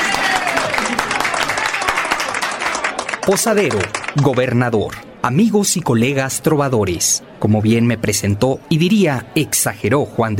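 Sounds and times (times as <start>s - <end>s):
audience applause and clapping: 0.0s - 4.6s
speech: 3.3s - 10.3s.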